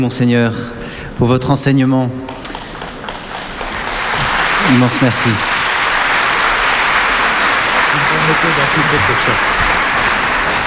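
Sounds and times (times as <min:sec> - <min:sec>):
speech: 0:00.0 - 0:02.6, 0:04.7 - 0:05.6, 0:08.0 - 0:09.7
audience applause: 0:02.5 - 0:10.6.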